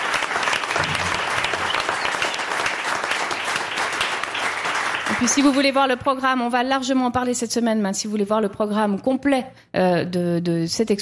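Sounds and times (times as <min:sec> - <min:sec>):
audience applause: 0:00.0 - 0:05.6
speech: 0:05.2 - 0:11.0.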